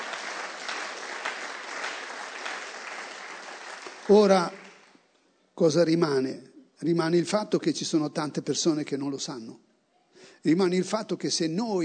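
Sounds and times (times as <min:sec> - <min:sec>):
audience applause: 0:00.0 - 0:05.0
speech: 0:04.1 - 0:04.6, 0:05.6 - 0:11.8.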